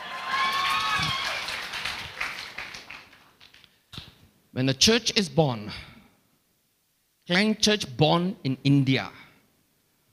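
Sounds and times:
higher cheering tones: 0.0 - 2.8
audience clapping: 0.0 - 3.8
speech: 4.6 - 5.9, 7.3 - 9.2.

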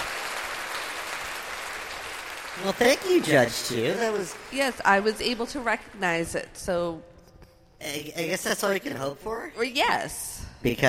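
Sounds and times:
crowd applause: 0.0 - 5.4
speech: 2.6 - 7.1, 7.8 - 10.8.

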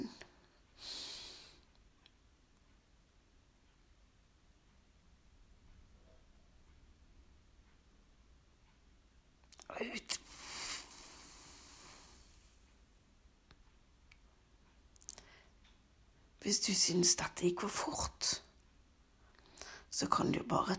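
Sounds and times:
faint steady hiss: 0.0 - 20.7
short breathy inhale: 0.8 - 1.7, 10.2 - 12.6, 19.4 - 19.9
speech: 9.8 - 10.2, 16.4 - 18.4, 20.0 - 20.7.

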